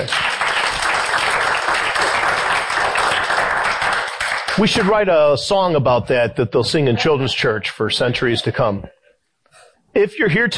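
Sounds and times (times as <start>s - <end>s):
audience clapping hands: 0.0s - 5.3s
speech: 4.6s - 9.0s, 10.0s - 10.5s.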